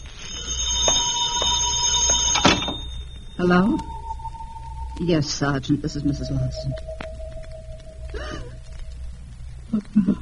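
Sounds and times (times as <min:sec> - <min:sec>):
telephone ringing: 0:00.0 - 0:05.4
speech: 0:03.4 - 0:03.9, 0:05.0 - 0:06.9, 0:09.7 - 0:10.1.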